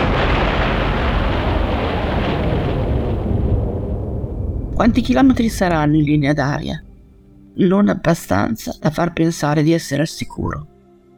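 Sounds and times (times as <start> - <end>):
bombs exploding as the Allies bomb the bridge over the Po: 0.0 - 8.7
speech: 4.8 - 6.9, 7.6 - 10.7.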